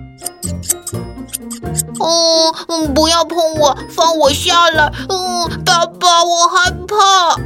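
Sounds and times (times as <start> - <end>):
big scissors snipping: 0.0 - 2.0
speech: 0.4 - 7.4.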